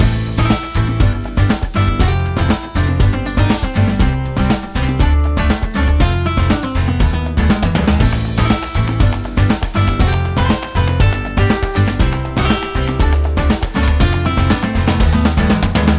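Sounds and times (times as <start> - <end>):
ramen background music: 0.0 - 15.9.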